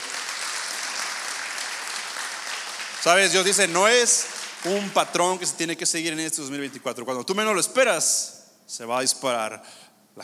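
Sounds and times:
audience applause: 0:00.0 - 0:05.5
speech: 0:03.0 - 0:10.2.

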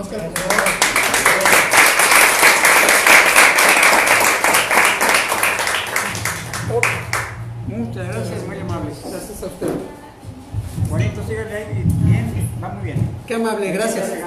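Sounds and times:
speech: 0:00.0 - 0:01.0, 0:11.0 - 0:14.2
audience applause: 0:00.4 - 0:07.4.

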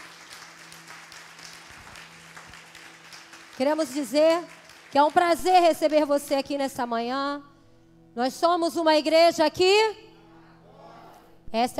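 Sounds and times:
audience applauding visitors: 0:00.0 - 0:05.4
speech: 0:03.6 - 0:07.5, 0:08.2 - 0:10.0, 0:11.5 - 0:11.7.

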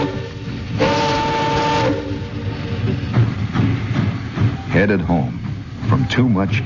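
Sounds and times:
long tonal train horn or whistle blast: 0:00.0 - 0:02.3
freight train rumbling through a rail yard: 0:00.0 - 0:06.6
speech: 0:04.8 - 0:06.6.

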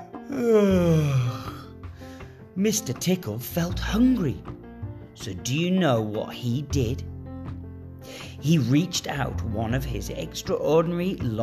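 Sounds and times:
narrator performing enormous yawn: 0:00.1 - 0:02.2
speech: 0:00.3 - 0:01.5, 0:02.6 - 0:04.6, 0:05.2 - 0:07.1, 0:08.1 - 0:11.4.

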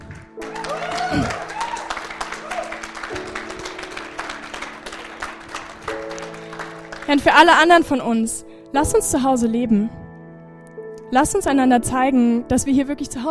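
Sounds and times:
audience applause: 0:00.0 - 0:07.6
speech: 0:00.7 - 0:01.4, 0:07.1 - 0:10.0, 0:11.1 - 0:13.2.

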